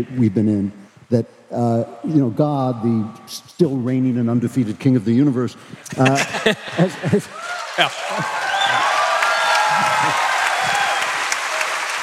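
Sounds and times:
speech: 0.0 - 8.8, 10.0 - 10.3
laughter: 5.8 - 10.8
audience applause at a live show at the Ryman: 6.9 - 12.0.

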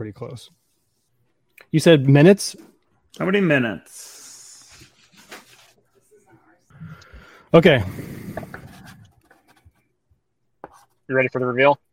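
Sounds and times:
speech: 0.0 - 0.6, 1.6 - 4.2, 7.5 - 8.2, 11.1 - 11.8
handwriting scratching strokes on a writing surface during a game night: 8.3 - 9.8.

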